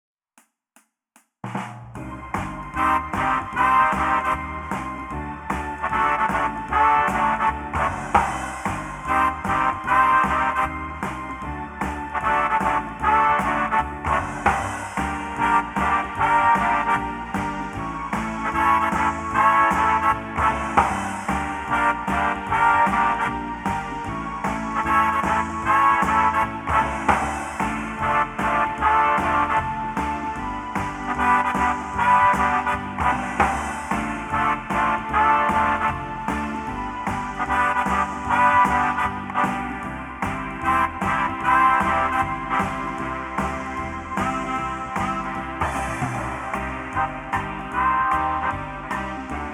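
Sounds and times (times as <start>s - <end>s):
lo-fi big band jazz: 2.0s - 49.5s.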